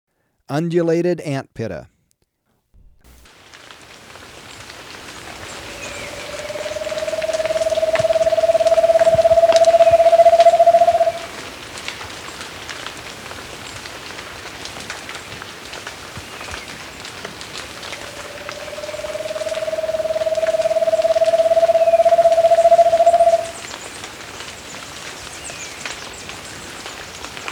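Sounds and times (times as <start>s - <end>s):
Undulated Antpitta deep quavering pulsed hoot in Ecuador: 5.3s - 11.4s, 17.6s - 23.8s.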